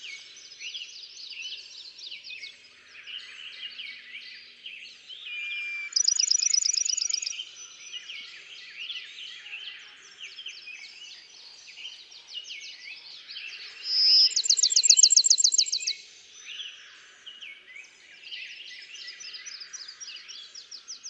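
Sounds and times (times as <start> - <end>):
many other birds chirping: 0.0 - 21.0
Bachman's sparrow trilled song: 5.2 - 8.1, 13.4 - 16.0.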